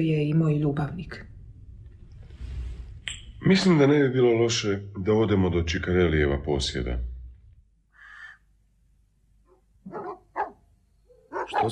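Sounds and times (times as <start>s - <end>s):
speech: 0.0s - 1.3s, 3.4s - 7.1s, 11.5s - 11.7s
dogs barking at an estate: 9.5s - 11.7s.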